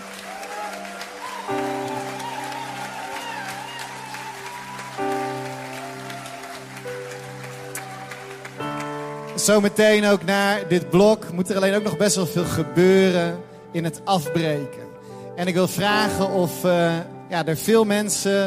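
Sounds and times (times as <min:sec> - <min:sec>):
crowd applauding: 0:00.0 - 0:10.8
sustained chord-like music: 0:00.0 - 0:18.4
speech: 0:09.5 - 0:14.8, 0:15.4 - 0:18.4.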